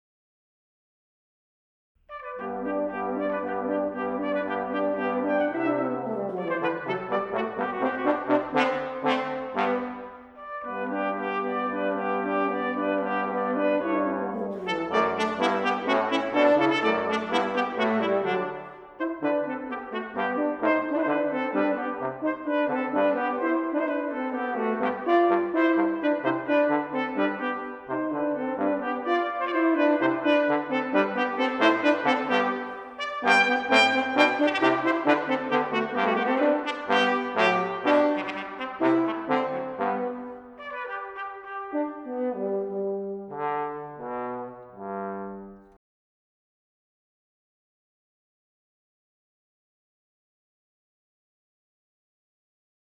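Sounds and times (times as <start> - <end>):
brass trio playing: 2.1 - 45.7.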